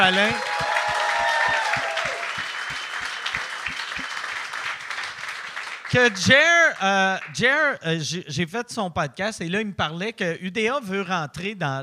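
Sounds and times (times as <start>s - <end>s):
speech: 0.0s - 0.6s, 5.9s - 11.8s
audience applause: 0.0s - 7.3s.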